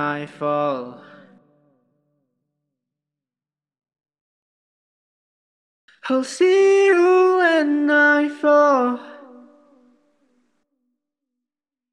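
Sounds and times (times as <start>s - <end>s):
EDM acapella vocals: 0.0s - 1.8s, 5.9s - 10.0s.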